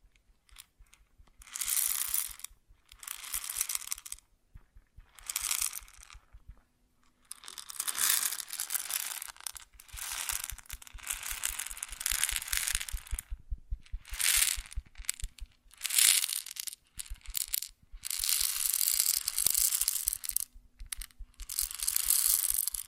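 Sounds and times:
faint low hum: 0:00.0 - 0:07.7, 0:09.3 - 0:22.8
grain being poured or shaken: 0:07.5 - 0:13.3, 0:14.1 - 0:22.8.

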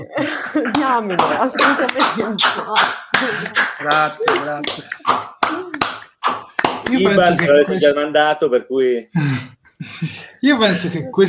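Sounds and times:
speech: 0:00.0 - 0:05.6, 0:06.9 - 0:11.2
laughter: 0:00.0 - 0:11.2
applause: 0:02.8 - 0:07.8.

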